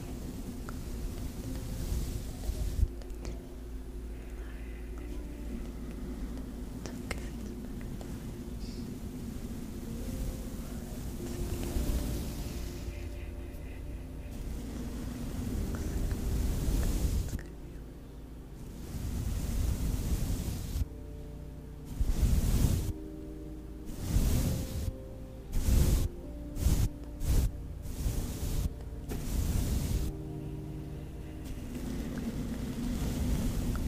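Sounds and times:
steady low hum: 0:00.0 - 0:33.8
person whispering: 0:02.2 - 0:09.1, 0:10.5 - 0:18.1.

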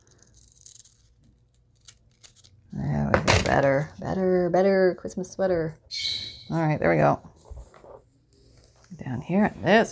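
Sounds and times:
scissors snipping magazine paper: 0:00.0 - 0:02.5
speech: 0:03.5 - 0:05.9, 0:06.5 - 0:07.4, 0:09.1 - 0:09.9.

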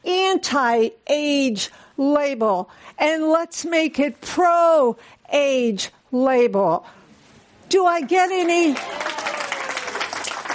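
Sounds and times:
speech: 0:00.5 - 0:07.0, 0:07.7 - 0:09.1
audience clapping: 0:08.6 - 0:10.5.

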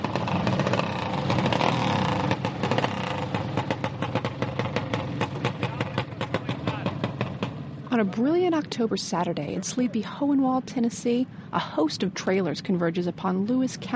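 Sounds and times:
small racing riding lawnmower engines revving: 0:00.0 - 0:13.9
speech: 0:08.0 - 0:13.9.

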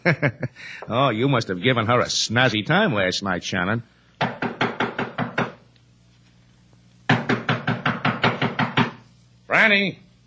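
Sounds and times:
speech: 0:00.0 - 0:03.9, 0:09.7 - 0:10.0
knocking on a door: 0:04.2 - 0:05.6, 0:07.1 - 0:09.0.

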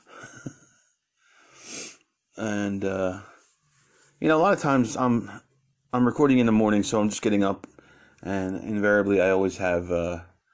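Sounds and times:
nose sniffling: 0:01.4 - 0:02.0
speech: 0:02.4 - 0:03.3, 0:04.2 - 0:10.3.

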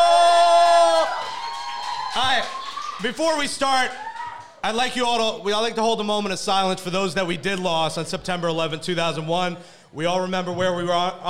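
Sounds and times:
loud sustained high whoop: 0:00.0 - 0:03.1, 0:03.8 - 0:04.6
audience clapping and cheering: 0:00.0 - 0:05.1
speech: 0:02.4 - 0:04.0, 0:04.6 - 0:11.2.

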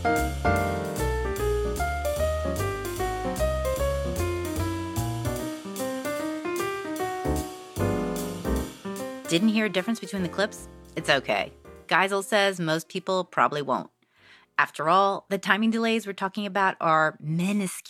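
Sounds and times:
steady bass and beat of a rhythm section: 0:00.0 - 0:11.3
jazz piano soloing over a rhythm section: 0:00.0 - 0:11.9
speech: 0:09.3 - 0:13.9, 0:14.6 - 0:17.8.

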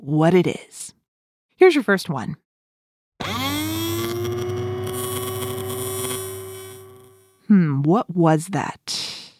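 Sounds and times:
speech: 0:00.0 - 0:01.0, 0:01.6 - 0:02.4, 0:07.5 - 0:09.0
dentist's drill whining: 0:03.2 - 0:07.4.

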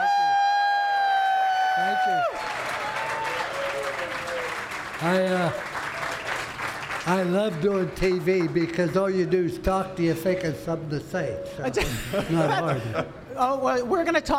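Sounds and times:
audience round of applause for Coach Lou Holtz: 0:00.8 - 0:09.4
speech: 0:01.8 - 0:06.2, 0:07.0 - 0:14.3
laughter: 0:11.6 - 0:13.3.

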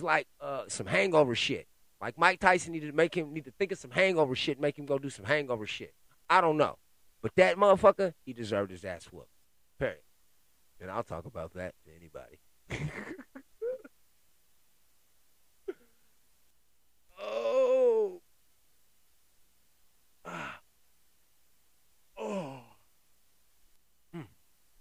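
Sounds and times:
speech: 0:00.0 - 0:10.0, 0:10.8 - 0:13.5
person yawning: 0:17.1 - 0:18.2, 0:20.2 - 0:20.6, 0:22.2 - 0:22.8, 0:24.1 - 0:24.4.

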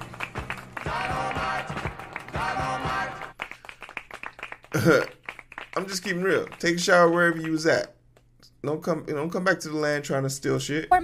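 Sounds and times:
clapping: 0:00.0 - 0:07.9
speech: 0:04.7 - 0:05.2, 0:05.8 - 0:08.0, 0:08.6 - 0:11.0.

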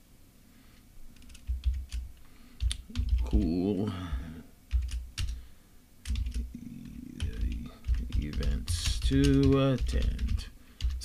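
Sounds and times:
typing on a computer keyboard: 0:01.2 - 0:03.5, 0:04.7 - 0:05.4, 0:06.0 - 0:11.0
speech: 0:03.4 - 0:04.2, 0:09.1 - 0:10.2.

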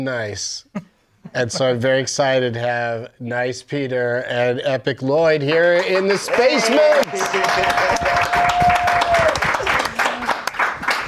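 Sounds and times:
speech: 0:00.0 - 0:08.0
room full of people applauding: 0:05.5 - 0:11.0
cheering: 0:05.8 - 0:10.6.

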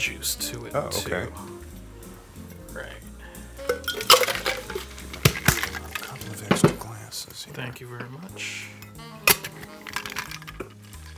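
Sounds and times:
speech: 0:00.0 - 0:01.5, 0:07.2 - 0:09.9
ice rattling in a cocktail shaker: 0:03.6 - 0:11.1.

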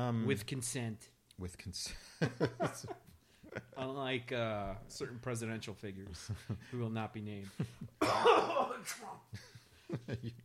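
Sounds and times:
speech: 0:00.0 - 0:10.4
person with a Cheeto lodged in the throat coughing: 0:08.0 - 0:09.2.

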